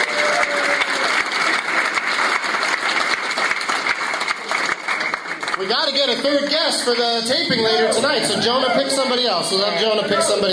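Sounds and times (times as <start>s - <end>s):
audience applause: 0.0s - 7.9s
speech: 5.7s - 10.5s.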